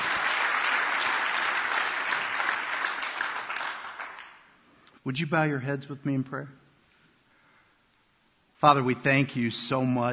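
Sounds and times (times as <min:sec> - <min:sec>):
church audience applause welcoming a speaker to the stage: 0:00.0 - 0:04.5
speech: 0:05.0 - 0:06.6, 0:08.6 - 0:10.1.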